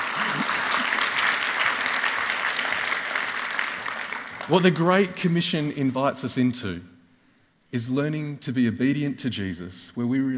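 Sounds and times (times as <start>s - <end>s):
audience applause: 0.0s - 4.9s
speech: 4.5s - 6.9s, 7.7s - 10.3s.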